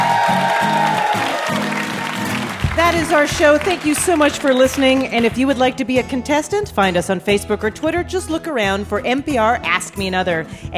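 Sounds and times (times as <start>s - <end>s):
audience applauding: 0.0s - 5.4s
low pulsing beat: 2.6s - 4.2s
speech: 3.0s - 10.7s.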